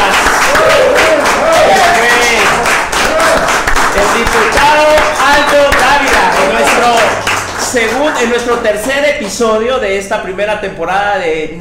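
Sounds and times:
people cheering: 0.0s - 8.7s
audience applause: 0.0s - 8.8s
speech: 7.8s - 11.6s.

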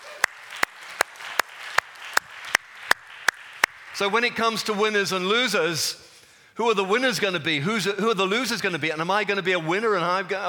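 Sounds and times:
audience clapping together in a steady beat: 0.0s - 5.2s
crowd noise: 0.0s - 5.2s
speech: 4.0s - 6.0s, 6.6s - 10.4s.

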